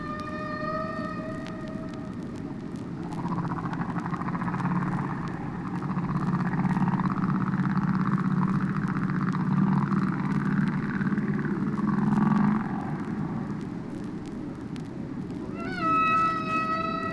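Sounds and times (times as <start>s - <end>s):
whale song: 0.0s - 13.7s, 15.4s - 17.1s.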